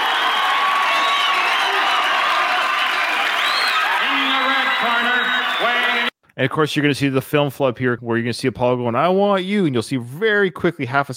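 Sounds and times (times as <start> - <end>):
boxing arena crowd cheering: 0.0 - 6.1
shouts and whoops from the boxing arena crowd: 0.0 - 6.1
speech: 6.4 - 11.1.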